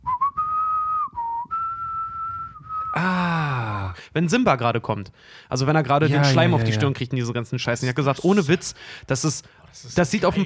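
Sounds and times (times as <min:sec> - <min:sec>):
whistled imitation of a flute melody: 0:00.0 - 0:03.2
speech: 0:04.2 - 0:10.4.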